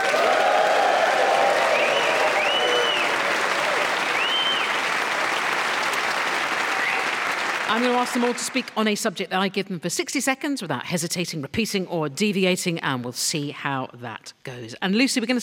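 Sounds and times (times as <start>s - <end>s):
audience applause: 0.0s - 8.8s
speech: 7.7s - 15.4s.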